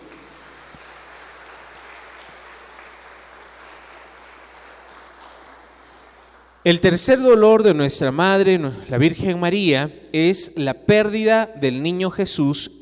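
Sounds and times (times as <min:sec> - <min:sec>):
audience applause: 0:00.0 - 0:06.6
speech: 0:06.6 - 0:12.8.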